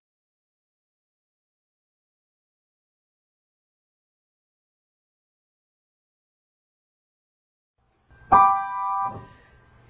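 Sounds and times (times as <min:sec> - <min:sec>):
descending triad arpeggio: 0:08.3 - 0:09.4.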